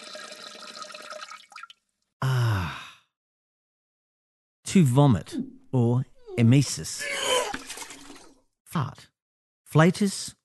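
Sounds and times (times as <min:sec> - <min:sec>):
urination trickling: 0:00.0 - 0:01.8, 0:07.2 - 0:08.4
speech: 0:04.7 - 0:07.3, 0:08.7 - 0:09.1, 0:09.7 - 0:10.4.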